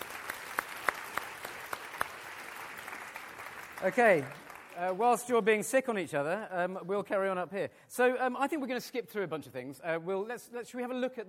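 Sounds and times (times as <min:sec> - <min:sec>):
audience round of applause: 0:00.0 - 0:05.2
speech: 0:03.8 - 0:11.2.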